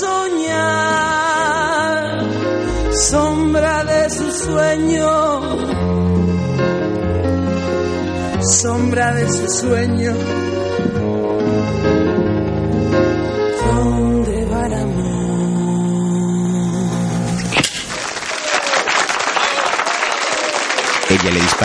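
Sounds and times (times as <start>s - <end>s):
music with sustained tones: 0.7s - 17.4s
speech: 3.0s - 3.7s, 4.3s - 5.9s, 8.4s - 11.3s
audience applause in a noir thriller film: 17.8s - 21.6s.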